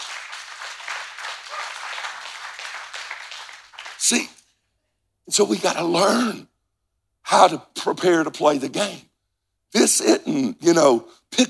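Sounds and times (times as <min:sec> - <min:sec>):
audience applause: 0:00.0 - 0:04.3
speech: 0:04.0 - 0:04.4, 0:05.3 - 0:06.5, 0:07.3 - 0:09.1, 0:09.7 - 0:11.4.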